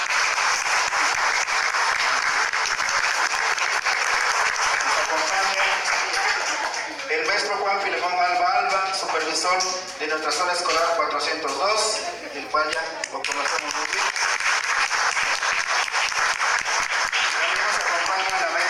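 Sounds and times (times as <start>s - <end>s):
audience applause: 0.0s - 8.4s, 12.6s - 18.6s
speech: 9.4s - 14.1s.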